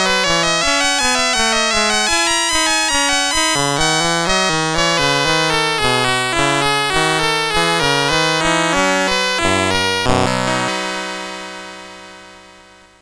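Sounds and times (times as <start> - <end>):
Commodore MOS6581R3 chip synth melody in C: 0.0 - 11.0.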